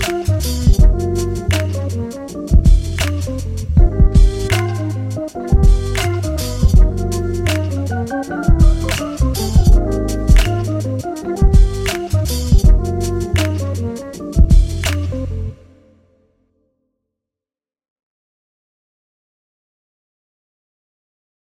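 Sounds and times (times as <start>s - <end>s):
jazzy music: 0.0s - 15.8s.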